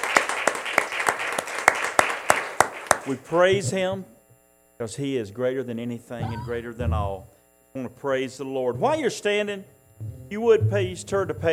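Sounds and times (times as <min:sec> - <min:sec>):
church congregation clapping in praise: 0:00.0 - 0:03.7
speech: 0:03.1 - 0:04.2, 0:04.8 - 0:11.5.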